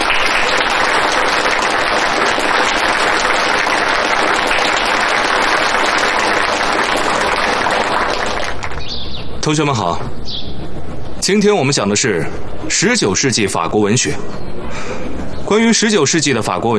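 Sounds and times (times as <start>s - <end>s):
audience applause: 0.0s - 8.9s
speech: 9.5s - 10.3s, 11.2s - 16.7s.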